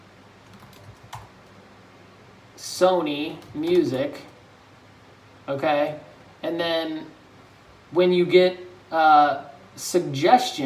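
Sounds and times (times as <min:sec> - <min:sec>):
light typing on a computer keyboard in Facebook Ads Manager: 0:00.4 - 0:01.6, 0:03.3 - 0:04.4
speech: 0:02.6 - 0:04.3, 0:05.5 - 0:07.2, 0:07.9 - 0:10.6.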